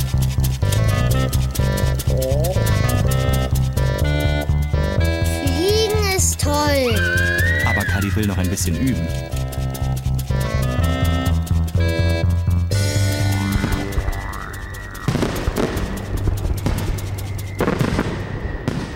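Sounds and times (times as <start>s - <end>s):
sustained tonal music: 0.0s - 18.6s
speech: 8.2s - 9.4s
fireworks exploding: 13.5s - 18.9s.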